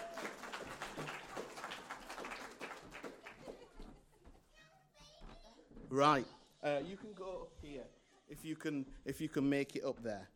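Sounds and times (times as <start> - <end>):
audience applause: 0.0 - 3.8
speech: 5.9 - 10.3.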